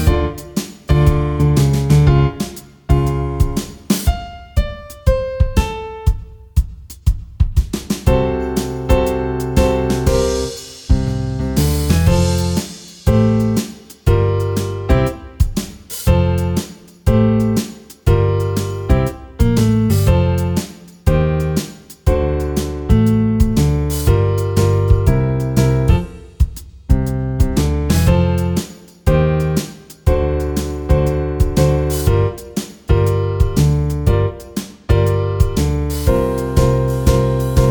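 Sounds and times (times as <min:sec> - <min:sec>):
play-along swing music: 0:00.0 - 0:37.6.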